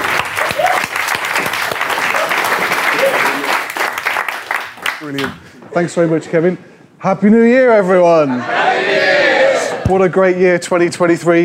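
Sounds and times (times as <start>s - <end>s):
crowd applauding: 0.0s - 5.3s
speech: 5.1s - 8.6s, 9.9s - 11.4s.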